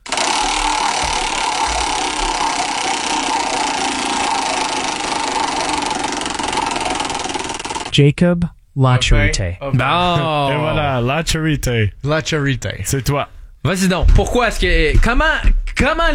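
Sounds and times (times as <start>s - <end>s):
spinning prize wheel ratcheting clatter: 0.0s - 7.9s
speech: 8.0s - 16.1s.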